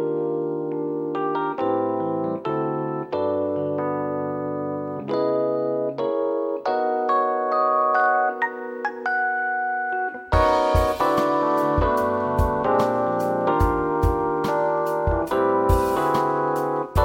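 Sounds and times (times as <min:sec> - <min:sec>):
Korg synthesizer imitating a Rhodes electric piano: 0:00.0 - 0:17.0
Hammond organs through Leslie cabinets playing a groove solo in concert: 0:07.9 - 0:17.0.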